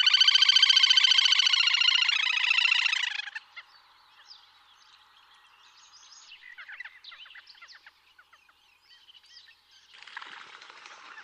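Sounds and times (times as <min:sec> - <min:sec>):
Little grebe high trilling: 0:00.0 - 0:03.4.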